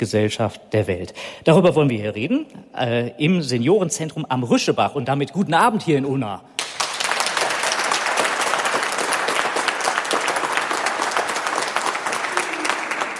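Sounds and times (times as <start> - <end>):
speech: 0.0 - 6.6
crowd applause: 6.6 - 13.1.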